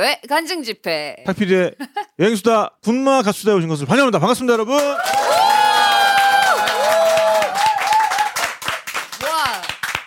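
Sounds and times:
speech: 0.0s - 5.3s
live audience clapping: 4.6s - 10.0s
cheering and high-pitched whoops: 4.9s - 8.5s.

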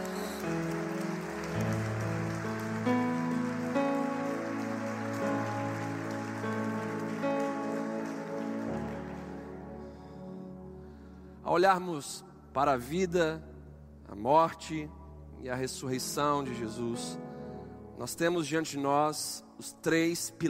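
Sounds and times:
audience applauding: 0.0s - 10.4s
speech: 11.5s - 13.5s, 14.1s - 17.2s, 18.0s - 20.4s.

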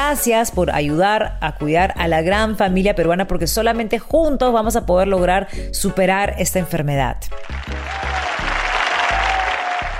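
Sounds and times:
speech: 0.1s - 8.2s
applause: 7.4s - 9.9s.

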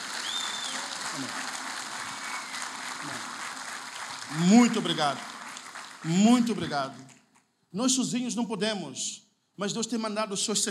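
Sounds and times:
audience applause: 0.0s - 7.1s
brief whistle-like tone: 0.2s - 0.8s, 2.1s - 2.6s
speech: 1.2s - 1.4s, 4.3s - 5.3s, 6.0s - 10.6s.

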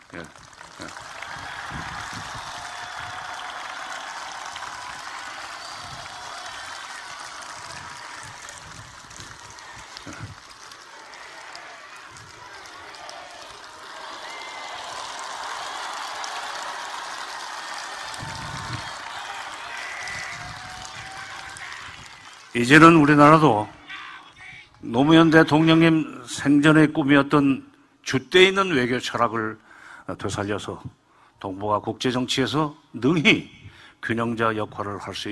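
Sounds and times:
crowd applause: 0.0s - 23.5s
speech: 0.1s - 1.1s, 22.6s - 23.8s, 24.9s - 35.3s
shouts and cheers: 0.8s - 25.8s.

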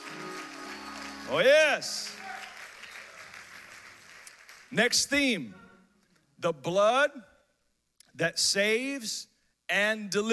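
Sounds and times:
audience clapping hands: 0.0s - 5.0s
speech: 1.3s - 2.2s, 4.7s - 5.6s, 6.4s - 7.3s, 8.2s - 10.3s.

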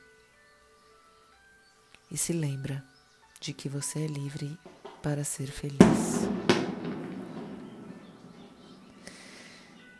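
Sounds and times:
speech: 2.1s - 6.5s
fireworks exploding in the sky: 4.7s - 9.8s.

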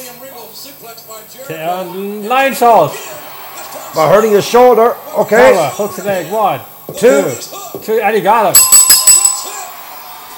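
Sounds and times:
speech: 0.8s - 3.3s, 3.9s - 8.7s
wrestling ring bell ringing: 8.5s - 10.0s.

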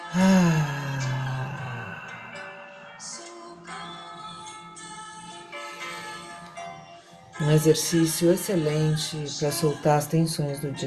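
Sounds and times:
voiced sigh of breath released through the mouth during a relaxation breathing exercise: 0.0s - 2.9s
speech: 0.1s - 0.4s, 7.4s - 10.8s.

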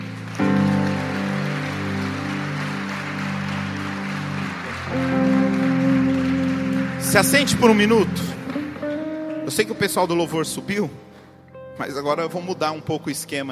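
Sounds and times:
audience applauding: 0.0s - 10.2s
speech: 7.1s - 8.4s, 9.5s - 11.1s, 11.8s - 13.5s.

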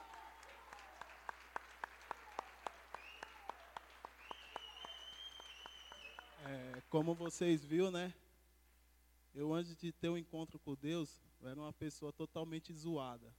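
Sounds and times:
audience clapping in rhythm: 0.0s - 7.8s
speech: 6.5s - 8.2s, 9.4s - 13.3s.

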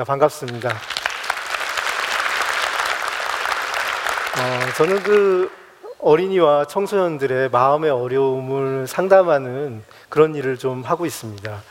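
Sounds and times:
speech: 0.0s - 0.9s, 4.4s - 11.6s
audience applause: 0.5s - 5.7s.

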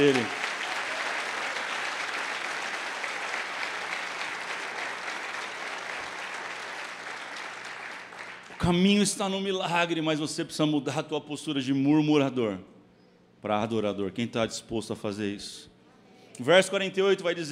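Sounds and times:
speech: 0.0s - 0.4s, 8.6s - 12.7s, 13.4s - 15.7s, 16.4s - 17.5s
audience applauding: 0.0s - 8.9s.

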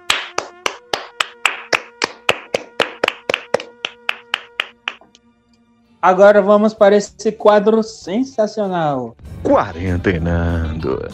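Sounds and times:
clapping hands: 0.0s - 5.1s
speech: 6.0s - 11.1s.

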